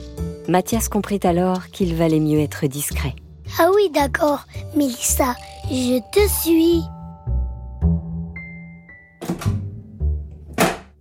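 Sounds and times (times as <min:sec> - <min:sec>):
speech: 0:00.5 - 0:07.0
bedroom door being shut: 0:09.2 - 0:09.7, 0:10.4 - 0:11.0.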